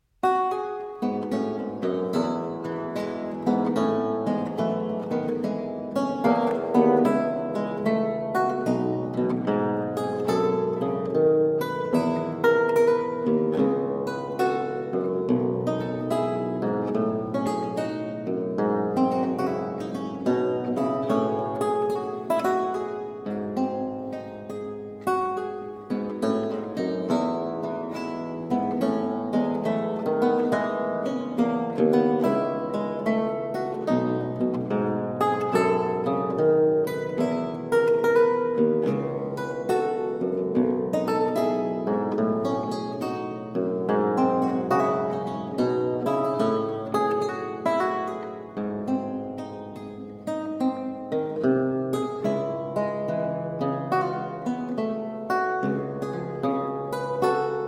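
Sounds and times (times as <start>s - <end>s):
lute piece in F major: 0.0s - 57.6s.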